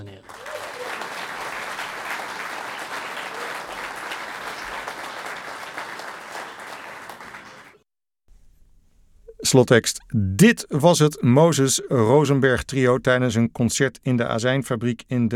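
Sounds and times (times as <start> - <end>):
audience applause at a concert: 0.0 - 7.8
speech: 9.5 - 15.3.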